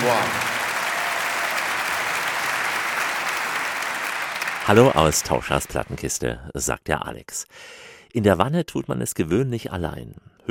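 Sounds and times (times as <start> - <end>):
audience applause for an orchestra: 0.0 - 6.0
speech: 0.1 - 0.4, 4.7 - 10.5.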